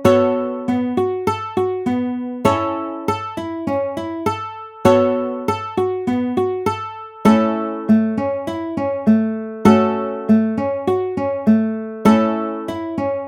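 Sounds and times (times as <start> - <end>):
ukulele arpeggio in A major: 0.0 - 13.2.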